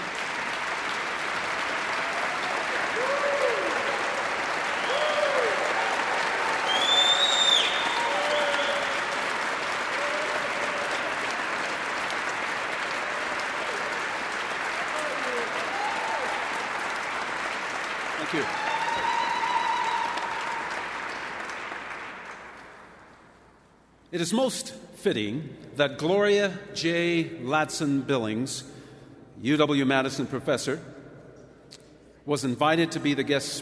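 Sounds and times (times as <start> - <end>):
audience applause for standing dais guests: 0.0 - 23.1
speech: 24.2 - 28.7, 29.4 - 30.9, 32.3 - 33.6.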